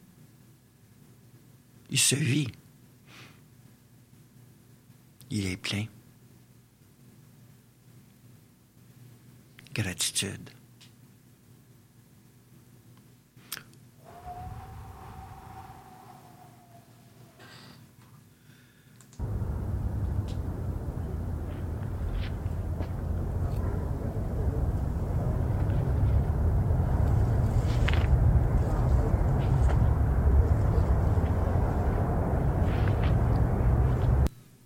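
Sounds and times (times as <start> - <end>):
speech: 1.9 - 2.6, 5.3 - 6.0, 9.8 - 10.6
wind blowing: 14.0 - 17.4, 19.2 - 34.3
faint wavering whine: 14.0 - 17.5, 19.2 - 34.3.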